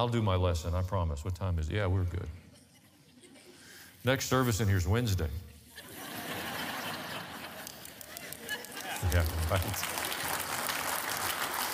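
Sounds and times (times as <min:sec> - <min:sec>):
speech: 0:00.0 - 0:02.5, 0:04.0 - 0:05.5, 0:09.0 - 0:10.0
laughter: 0:02.4 - 0:03.8, 0:05.7 - 0:10.4
audience clapping: 0:07.0 - 0:11.7.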